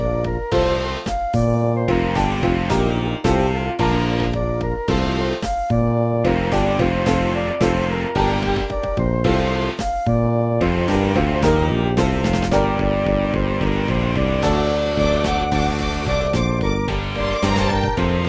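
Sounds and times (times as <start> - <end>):
Steinway piano: 0.0 - 18.2
flute: 0.0 - 18.2
fretless bass: 0.0 - 18.2.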